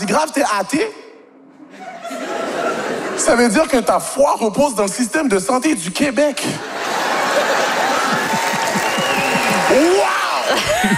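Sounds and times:
speech: 0.1s - 1.0s, 3.2s - 6.8s, 9.7s - 10.9s
laughter: 1.7s - 3.6s, 6.4s - 10.9s
audience applause: 6.9s - 10.9s.

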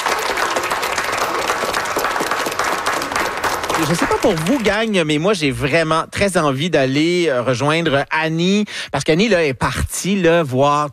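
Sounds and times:
audience applause: 0.0s - 5.1s
speech: 3.8s - 10.9s.

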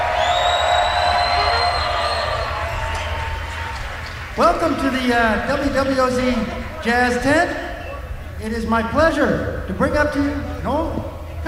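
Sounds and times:
high whistles from festival crowd: 0.0s - 4.3s
festival crowd cheering in the WWOZ Jazz Tent: 0.0s - 8.1s
speech: 4.4s - 7.6s, 8.4s - 11.1s.

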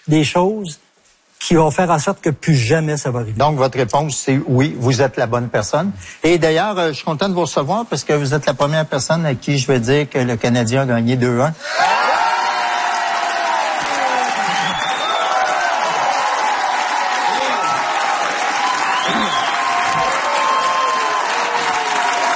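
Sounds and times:
speech: 0.0s - 12.1s
audience applause and cheering: 11.6s - 22.3s.

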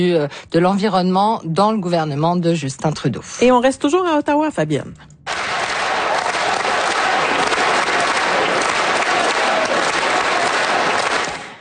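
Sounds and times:
speech: 0.0s - 5.1s
federal MPs in Ottawa applauding Olympic and Paralympic athletes: 5.3s - 11.5s.

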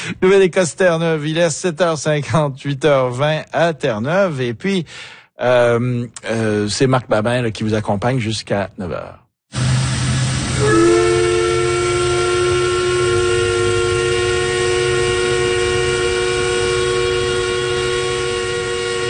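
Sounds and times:
speech: 0.0s - 9.6s
Corner Brook paper mill steam whistle: 9.5s - 19.0s.

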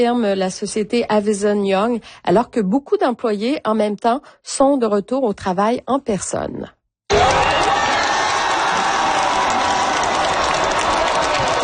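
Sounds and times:
speech: 0.0s - 7.5s
crowd cheering at the Vancouver Fan Festival after France's World Cup win: 7.1s - 11.6s.

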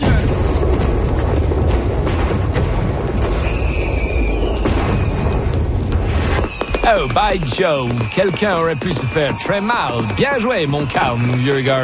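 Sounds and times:
gunpowder barrels exploding on boats: 0.0s - 8.8s
brief whistling tone: 3.3s - 11.8s
speech: 6.9s - 11.8s.

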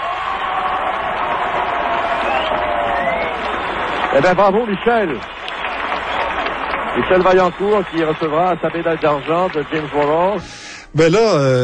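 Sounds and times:
whoops and shouts: 0.0s - 3.6s
show-jumping crowd cheering a silver medallist: 0.0s - 10.5s
speech: 4.1s - 5.4s, 7.0s - 11.6s.

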